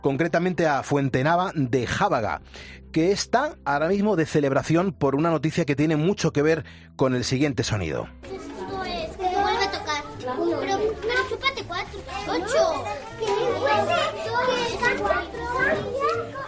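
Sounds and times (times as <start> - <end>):
speech: 0.0 - 8.5, 10.2 - 16.3
classroom full of children chattering in Fuentenava de Jábaga: 8.2 - 16.4.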